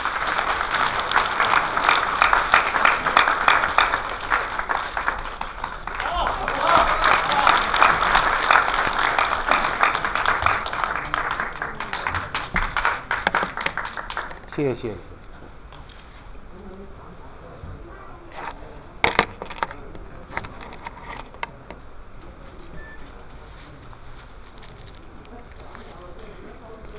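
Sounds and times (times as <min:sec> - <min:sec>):
audience applause: 0:00.0 - 0:15.0
speech: 0:14.6 - 0:15.1.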